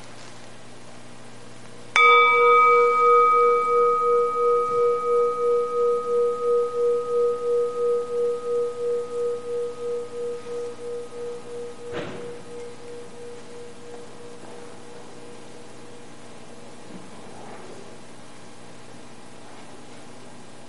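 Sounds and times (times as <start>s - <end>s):
meditation bell ringing: 1.9s - 16.8s.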